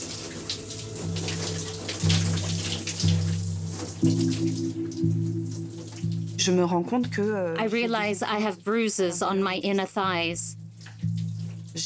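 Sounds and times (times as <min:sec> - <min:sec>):
shower running: 0:00.0 - 0:06.8, 0:10.7 - 0:11.8
speech: 0:06.4 - 0:10.6.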